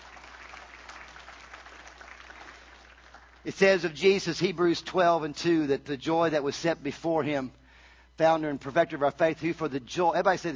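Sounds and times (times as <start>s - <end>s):
audience applause: 0.0s - 3.5s
speech: 3.4s - 7.6s, 8.2s - 10.5s.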